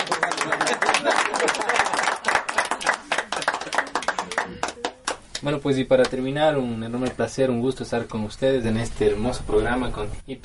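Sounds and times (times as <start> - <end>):
laughter: 0.0 - 2.4
audience applause: 0.0 - 5.2
speech: 5.4 - 10.4.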